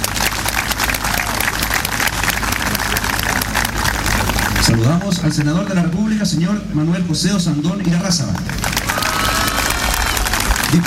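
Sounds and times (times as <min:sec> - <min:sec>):
crowd applauding: 0:00.0 - 0:05.8, 0:08.4 - 0:10.8
speech: 0:04.8 - 0:08.8.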